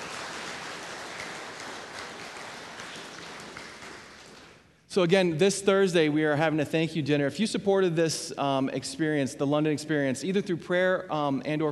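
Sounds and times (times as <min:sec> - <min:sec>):
audience applause: 0:00.0 - 0:04.6
speech: 0:05.0 - 0:11.7.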